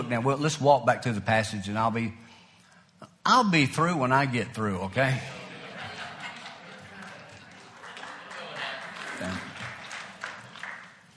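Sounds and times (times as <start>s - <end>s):
speech: 0.0s - 2.4s, 3.0s - 5.4s
laughter: 5.0s - 10.6s
light polite clapping from a small group: 6.2s - 11.1s.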